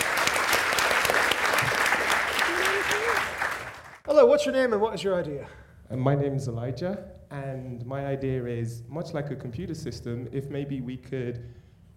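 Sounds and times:
audience applause: 0.0s - 4.0s
speech: 4.4s - 11.6s.

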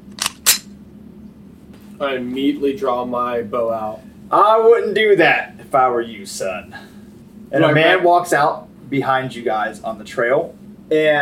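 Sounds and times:
faint low hum: 0.0s - 11.2s
flintlock hammer clicks being cocked back: 0.1s - 0.7s
speech: 2.0s - 11.2s.

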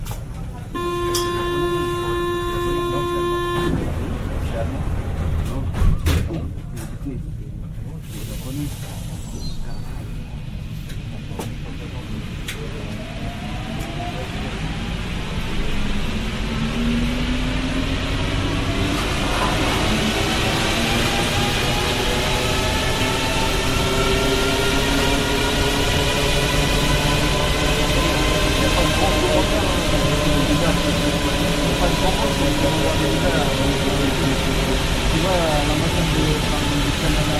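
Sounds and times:
Paris Métro train rumbling: 0.0s - 37.3s
Paris Métro train accelerating with rising whine: 0.6s - 5.3s, 10.2s - 37.3s
steady tone: 0.8s - 4.0s.

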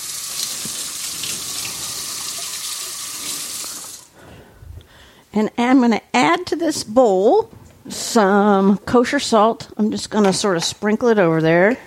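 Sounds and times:
water running from a tap while oil is washed off hands at a kitchen sink: 0.0s - 4.1s
speech: 5.3s - 11.8s.

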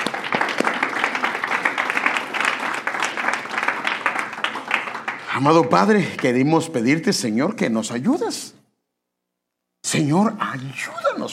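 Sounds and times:
audience applauding: 0.0s - 7.1s
speech: 5.4s - 8.6s, 9.9s - 11.3s.

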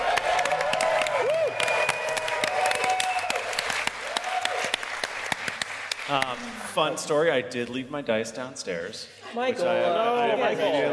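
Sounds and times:
audience applause and cheering: 0.0s - 6.6s
speech: 6.1s - 10.9s.

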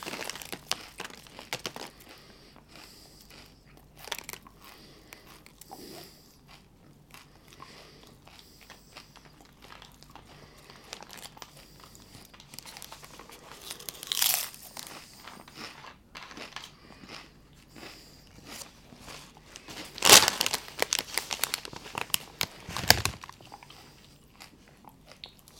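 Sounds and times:
crunching and crinkling bites of chips: 0.0s - 5.8s, 10.9s - 18.7s, 19.6s - 23.6s.

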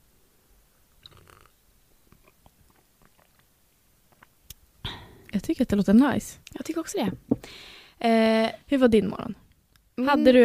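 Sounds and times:
coffee being sipped and swallowed: 1.0s - 3.5s
speech: 5.4s - 9.4s, 10.0s - 10.4s.

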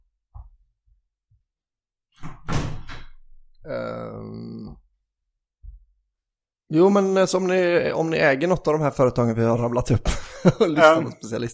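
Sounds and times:
door banging shut: 2.2s - 3.2s
speech: 3.6s - 4.8s, 6.7s - 11.5s.

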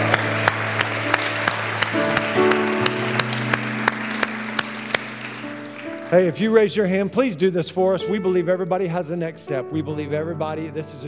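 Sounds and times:
crowd audience applause: 0.0s - 6.4s
speech: 6.1s - 11.0s.

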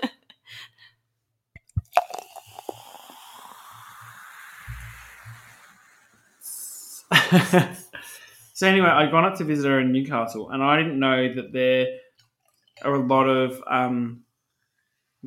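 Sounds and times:
pouring a drink: 1.6s - 7.2s
laughter: 7.1s - 8.3s
speech: 7.3s - 7.8s, 8.6s - 12.0s, 12.8s - 14.2s.

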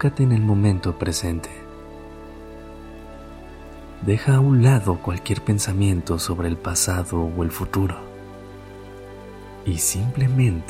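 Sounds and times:
speech: 0.0s - 1.6s, 4.0s - 8.1s, 9.6s - 10.6s
rain falling: 1.1s - 10.6s.

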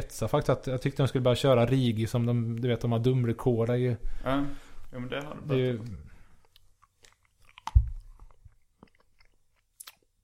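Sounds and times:
speech: 0.1s - 6.1s
person chewing a Cloetta Minimu candy: 4.8s - 10.2s.

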